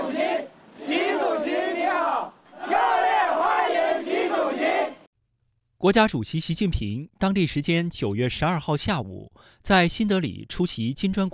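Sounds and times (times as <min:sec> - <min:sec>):
crowd of overseas Chinese chanting a unison welcome to Xi Jinping: 0:00.0 - 0:05.1
speech: 0:05.8 - 0:11.3.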